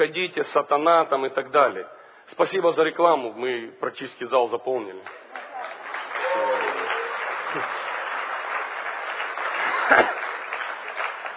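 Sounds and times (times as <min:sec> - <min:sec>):
speech: 0:00.0 - 0:05.4
audience applause: 0:05.0 - 0:11.3.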